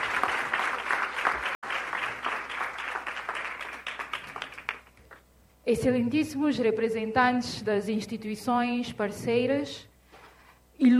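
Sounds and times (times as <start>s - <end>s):
audience applause: 0.0s - 5.0s
speech: 5.7s - 9.9s.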